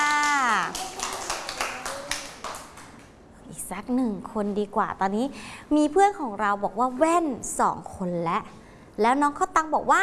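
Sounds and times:
children clapping: 0:00.0 - 0:03.2
speech: 0:03.7 - 0:10.0.

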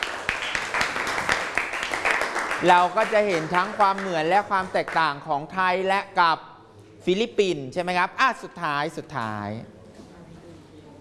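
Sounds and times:
classmates clapping for a fellow student in a classroom: 0:00.0 - 0:05.2
speech: 0:02.6 - 0:09.8.

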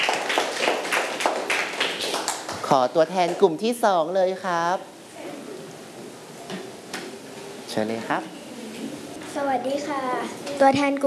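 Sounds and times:
students applauding a classmate in a classroom: 0:00.0 - 0:02.8
speech: 0:02.7 - 0:04.9, 0:07.8 - 0:08.4, 0:09.4 - 0:11.0.

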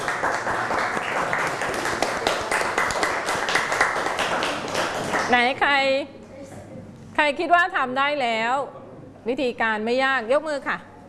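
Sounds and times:
students clapping for themselves: 0:00.0 - 0:05.4
speech: 0:05.3 - 0:06.2, 0:07.2 - 0:10.9.

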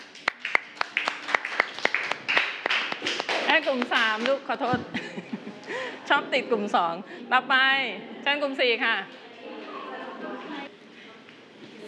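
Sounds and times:
audience clapping: 0:00.0 - 0:04.5
speech: 0:03.6 - 0:05.0, 0:05.7 - 0:09.2
laughter: 0:04.8 - 0:06.3, 0:09.4 - 0:10.7.

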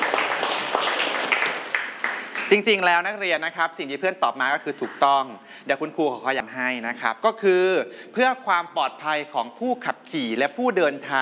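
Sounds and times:
students in a classroom applauding a classmate: 0:00.0 - 0:02.9
speech: 0:02.5 - 0:11.1.

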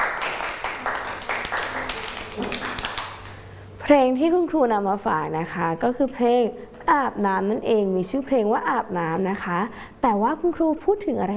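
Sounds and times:
children clapping hands: 0:00.0 - 0:03.4
speech: 0:03.9 - 0:11.3.

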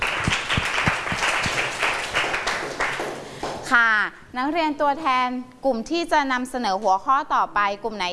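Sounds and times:
classroom applause for student representatives: 0:00.0 - 0:03.7
speech: 0:04.4 - 0:08.1.

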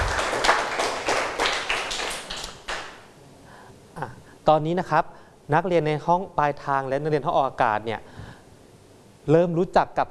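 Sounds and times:
students clapping hands: 0:00.0 - 0:03.1
speech: 0:04.5 - 0:08.1, 0:09.2 - 0:10.0.

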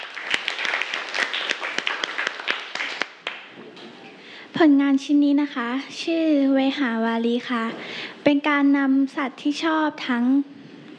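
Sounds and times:
classmates applauding: 0:00.0 - 0:03.5
speech: 0:04.6 - 0:10.5.

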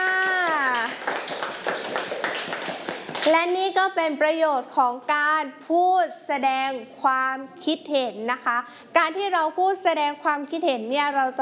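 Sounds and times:
children clapping for a classmate: 0:00.0 - 0:03.5
speech: 0:03.2 - 0:11.4.

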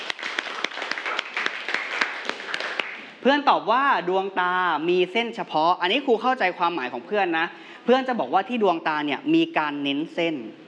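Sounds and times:
classroom clapping: 0:00.0 - 0:03.2
speech: 0:03.2 - 0:10.6.

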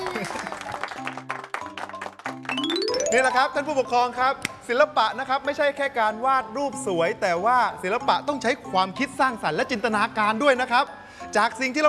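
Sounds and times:
small group clapping: 0:00.0 - 0:03.3
speech: 0:03.1 - 0:11.8.

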